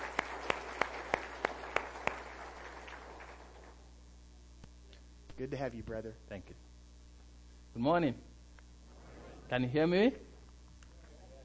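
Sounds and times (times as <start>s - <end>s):
hand claps welcoming a guest at Hillcrest Baptist: 0.0s - 3.8s
speech: 5.4s - 6.7s, 7.8s - 8.3s, 9.5s - 10.3s.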